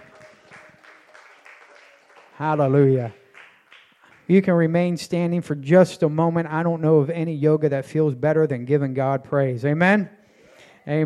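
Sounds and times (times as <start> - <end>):
audience hand clapping: 0.0 - 4.9
speech: 2.4 - 3.2, 4.3 - 10.2, 10.8 - 11.0.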